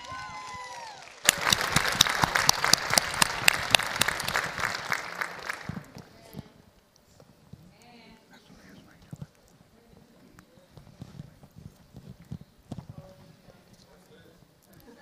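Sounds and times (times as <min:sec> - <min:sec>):
audience applause: 0:00.0 - 0:06.1.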